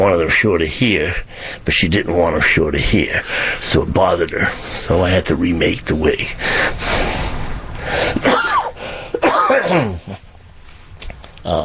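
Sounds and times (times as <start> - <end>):
speech: 0.0 - 7.0, 9.7 - 10.3, 11.4 - 11.6
person coughing: 8.2 - 10.2.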